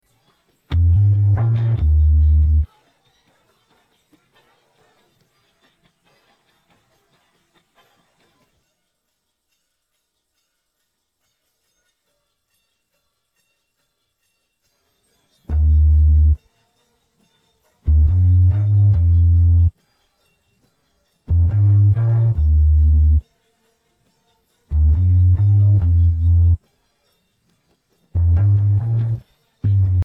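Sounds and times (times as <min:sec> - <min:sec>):
bass: 0:00.7 - 0:02.7, 0:15.5 - 0:16.4, 0:17.9 - 0:19.7, 0:21.3 - 0:23.2, 0:24.7 - 0:26.6, 0:28.2 - 0:30.0.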